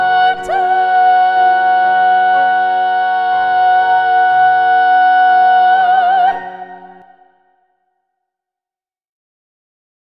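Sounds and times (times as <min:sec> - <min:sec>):
SSAA soprano voice singing: 0:00.0 - 0:07.4.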